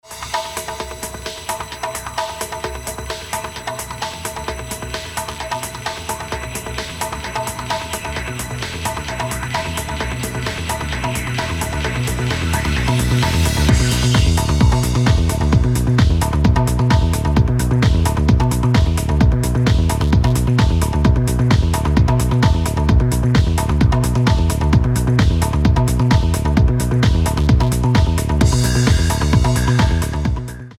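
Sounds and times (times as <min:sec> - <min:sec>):
instrumental music: 0:00.0 - 0:30.7.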